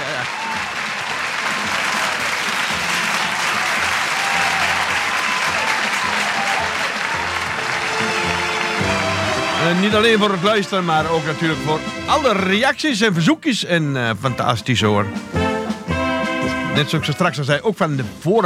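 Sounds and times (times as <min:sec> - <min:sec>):
applause: 0:00.0 - 0:12.4
speech: 0:09.7 - 0:15.4, 0:16.8 - 0:18.4.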